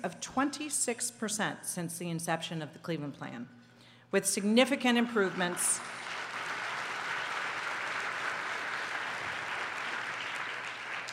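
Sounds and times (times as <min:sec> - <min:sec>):
speech: 0:00.0 - 0:06.0
audience applause: 0:05.4 - 0:11.1.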